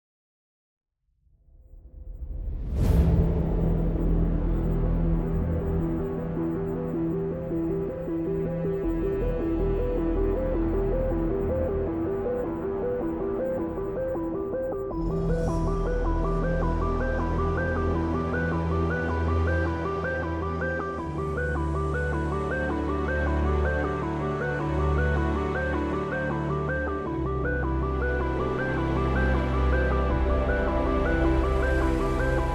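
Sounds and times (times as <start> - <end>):
epic orchestral cover: 2.5 - 32.5.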